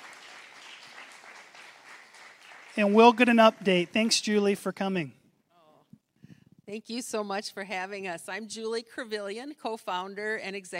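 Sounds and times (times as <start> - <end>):
church congregation at the Mill Church applauding missionaries: 0.0 - 5.1
speech: 2.8 - 5.2, 6.7 - 10.7.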